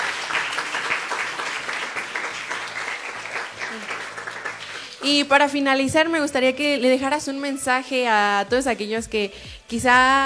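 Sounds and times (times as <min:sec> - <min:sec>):
crowd applauding: 0:00.0 - 0:05.6
speech: 0:05.0 - 0:10.2.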